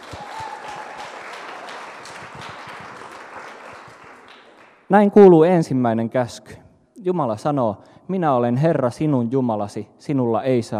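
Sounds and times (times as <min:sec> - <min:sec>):
audience applause: 0:00.0 - 0:04.8
speech: 0:04.9 - 0:10.7.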